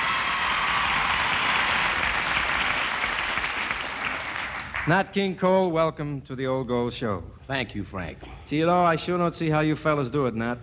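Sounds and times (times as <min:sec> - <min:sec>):
audience applause including the balcony welcoming a jazz trio: 0:00.0 - 0:04.9
speech: 0:04.8 - 0:10.6.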